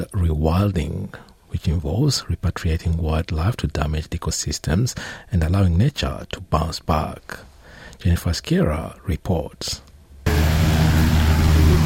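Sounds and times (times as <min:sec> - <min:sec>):
speech: 0:00.3 - 0:10.4
light propeller plane engine drone: 0:10.3 - 0:11.8.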